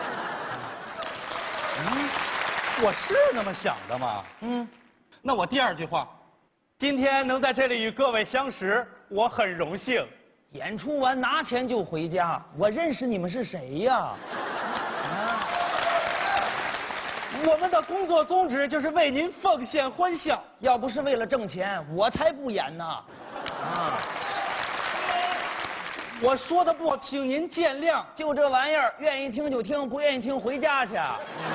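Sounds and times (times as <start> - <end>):
laughter: 0.0 - 2.2, 14.2 - 16.4, 23.1 - 25.1, 30.7 - 31.5
audience applause: 0.0 - 4.0, 14.6 - 17.8, 23.4 - 26.2
speech: 2.8 - 6.2, 6.8 - 14.4, 17.3 - 24.2, 26.2 - 31.5.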